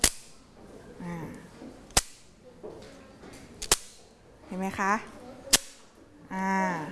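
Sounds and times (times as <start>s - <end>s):
Thai krap phuang clapper struck against the hand: 0.0s - 0.4s, 1.9s - 2.3s, 3.6s - 4.0s, 5.5s - 5.8s
speech: 4.6s - 5.1s, 6.3s - 6.9s.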